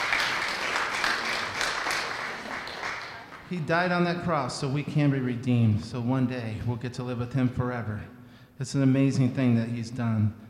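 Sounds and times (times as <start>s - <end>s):
audience hand clapping: 0.0s - 3.5s
speech: 3.5s - 10.4s.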